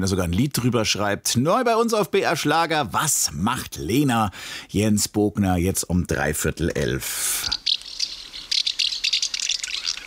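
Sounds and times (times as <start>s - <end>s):
speech: 0.0s - 7.6s
house martins twittering: 7.2s - 10.0s.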